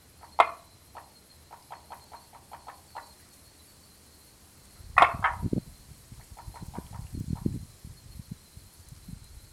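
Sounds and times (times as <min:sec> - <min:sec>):
frog giving short sharp knocking clucks: 0:00.2 - 0:03.2, 0:05.0 - 0:05.6, 0:06.2 - 0:07.6.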